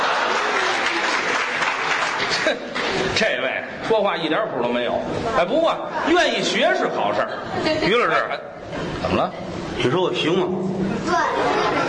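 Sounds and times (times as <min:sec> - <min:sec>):
audience applause at a live comedic crosstalk performance: 0:00.0 - 0:03.2
laughter: 0:00.0 - 0:03.2, 0:05.6 - 0:09.5, 0:11.0 - 0:11.8
speech: 0:02.5 - 0:11.8.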